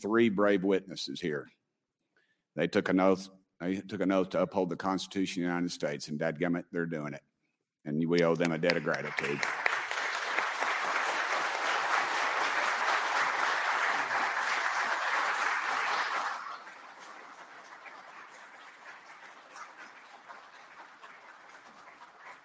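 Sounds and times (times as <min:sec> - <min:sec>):
speech: 0:00.0 - 0:01.6, 0:02.6 - 0:09.6
audience applause: 0:08.2 - 0:22.4.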